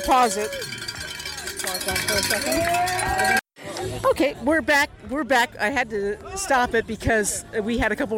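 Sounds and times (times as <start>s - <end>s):
speech: 0.0s - 0.8s, 1.6s - 3.4s, 4.0s - 8.1s
cowbells ringing at a running race finish: 0.0s - 3.4s.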